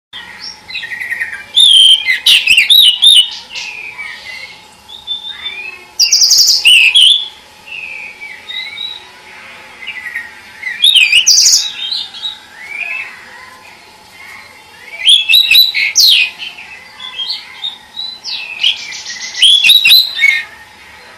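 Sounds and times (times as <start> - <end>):
Oriental magpie-robin whistling song: 0.4 - 9.1, 10.1 - 13.1, 14.9 - 16.3, 17.0 - 20.5.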